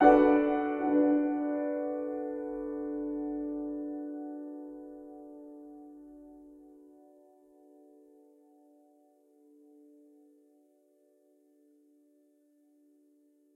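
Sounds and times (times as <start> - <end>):
piano: 0.0 - 13.5.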